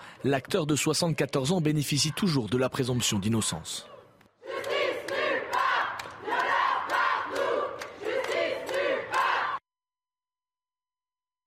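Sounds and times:
speech: 0.2s - 4.0s
protest crowd chanting a slogan in unison: 3.8s - 9.6s.

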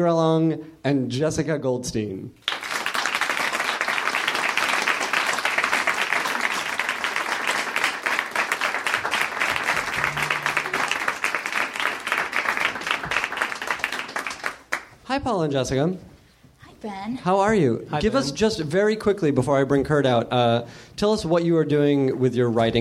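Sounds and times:
speech: 0.0s - 2.5s, 15.2s - 16.1s, 16.8s - 22.7s
audience round of applause: 2.5s - 14.9s.

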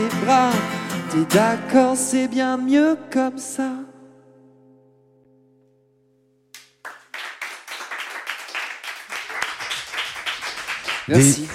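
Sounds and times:
speech: 0.0s - 3.9s, 11.1s - 11.5s
audience applause: 6.8s - 11.5s.

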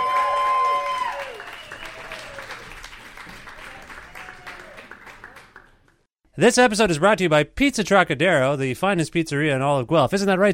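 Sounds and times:
audience applause at a live show: 0.0s - 6.1s
speech: 6.4s - 10.5s.

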